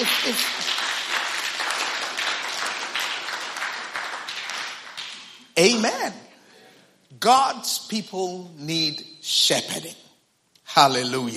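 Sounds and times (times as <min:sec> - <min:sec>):
audience applause: 0:00.0 - 0:05.8
speech: 0:00.2 - 0:00.6, 0:05.6 - 0:06.2, 0:07.1 - 0:10.0, 0:10.7 - 0:11.3.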